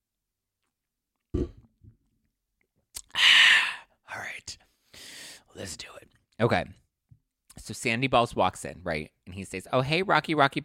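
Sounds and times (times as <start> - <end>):
person chugging a drink: 1.4 - 1.7
speech: 5.6 - 6.8, 7.7 - 10.6.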